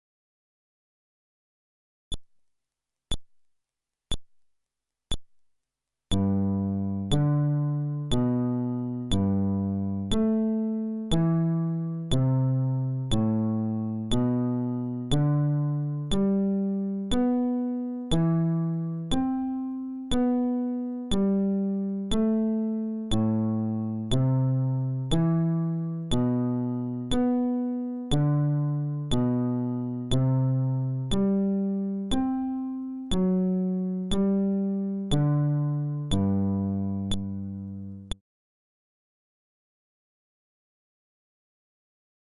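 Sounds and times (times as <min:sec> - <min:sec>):
fretless bass arpeggio: 0:06.1 - 0:38.1.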